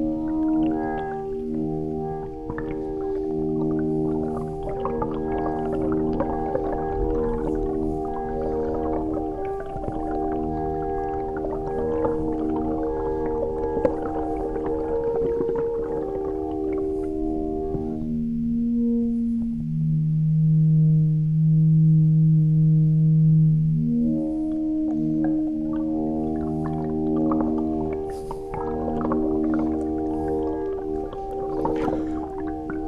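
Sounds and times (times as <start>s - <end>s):
watery rumbles: 0.0s - 18.2s, 24.3s - 32.8s
river current bowing harpsichord strings, contact-miked: 0.0s - 32.8s.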